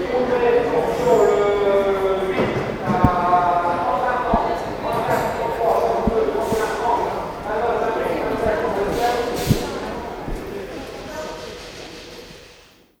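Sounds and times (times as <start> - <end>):
fish auction in Lesconil: 0.0 - 12.9.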